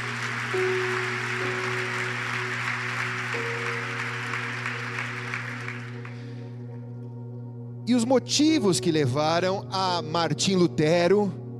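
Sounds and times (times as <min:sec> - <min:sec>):
audience applause: 0:00.0 - 0:06.4
speech: 0:00.5 - 0:00.8, 0:07.9 - 0:11.4.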